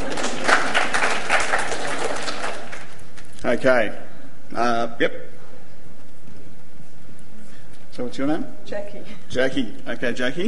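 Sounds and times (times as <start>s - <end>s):
audience round of applause: 0.0s - 3.2s
speech: 3.5s - 5.3s, 8.0s - 10.4s.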